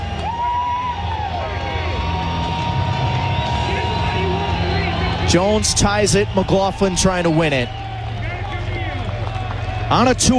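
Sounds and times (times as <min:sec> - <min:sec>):
babble of voices: 0:00.0 - 0:10.3
loud stadium crowd cheering: 0:00.0 - 0:10.3
shrill whistles: 0:00.0 - 0:10.3
speech: 0:05.3 - 0:07.8, 0:09.9 - 0:10.3.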